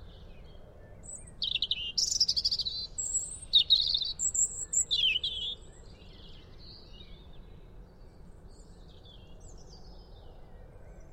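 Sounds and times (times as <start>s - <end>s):
European robin song: 1.0s - 7.2s.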